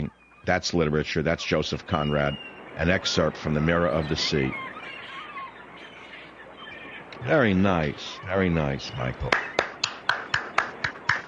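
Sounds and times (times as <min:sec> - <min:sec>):
speech: 0:00.5 - 0:04.7, 0:07.2 - 0:09.5
person applauding: 0:09.2 - 0:11.2.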